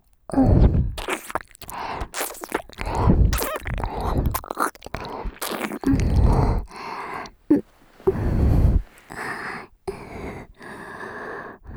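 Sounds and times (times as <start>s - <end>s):
ear licking sounds: 0.0s - 9.4s.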